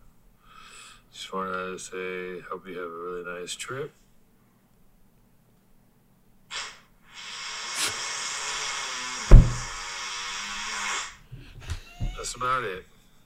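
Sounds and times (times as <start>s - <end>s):
speech: 1.3s - 4.0s, 12.4s - 13.0s
comically loud fart: 6.5s - 11.3s.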